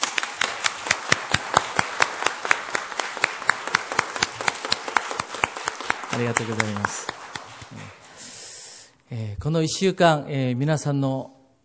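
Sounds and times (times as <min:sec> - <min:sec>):
audience applause: 0:00.0 - 0:08.1
speech: 0:06.2 - 0:08.0, 0:09.1 - 0:11.4.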